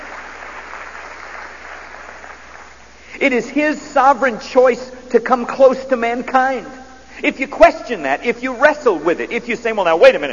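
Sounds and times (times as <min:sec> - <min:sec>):
audience applauding: 0:00.0 - 0:02.8
speech: 0:03.2 - 0:10.3.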